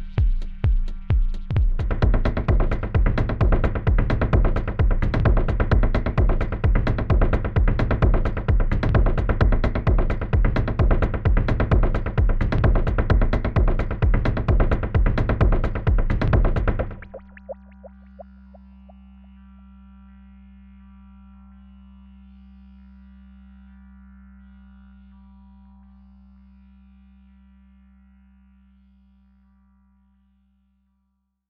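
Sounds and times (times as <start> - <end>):
heavy beat: 0.0 - 18.2.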